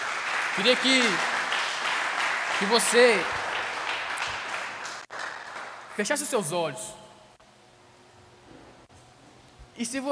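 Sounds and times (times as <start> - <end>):
audience applause: 0.0 - 6.1
speech: 0.6 - 1.3, 2.6 - 3.4, 6.0 - 7.0, 9.8 - 10.1.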